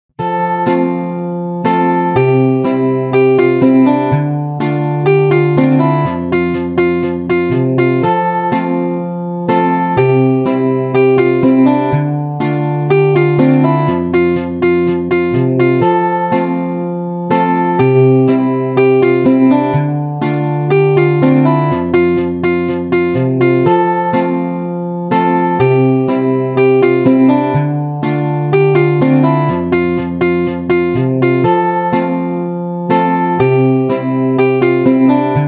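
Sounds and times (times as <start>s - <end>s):
ringtone: 0.2s - 35.4s.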